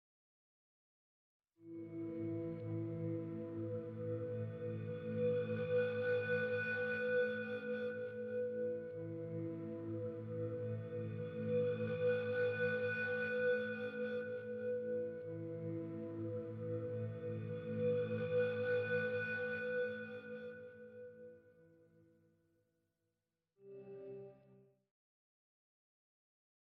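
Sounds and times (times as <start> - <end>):
temple exploration mood music: 1.6 - 21.8.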